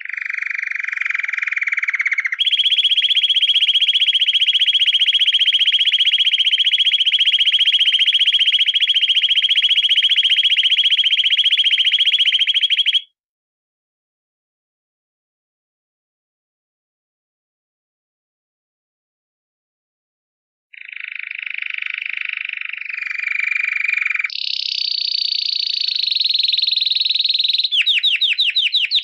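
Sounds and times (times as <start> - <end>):
canary giving rattling trill and high pulsed roll: 0.0 - 13.0, 20.8 - 29.0.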